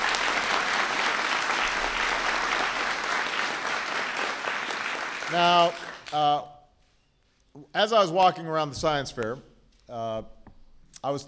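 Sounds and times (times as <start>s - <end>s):
audience applause: 0.0s - 6.4s
speech: 5.3s - 6.5s, 7.6s - 10.3s, 11.0s - 11.2s.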